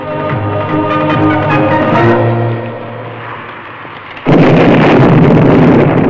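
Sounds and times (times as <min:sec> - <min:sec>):
tonal music passage: 0:00.0 - 0:03.6
explosion of a fuse-lit charge blasting away a wooden ranch fence: 0:03.0 - 0:06.0.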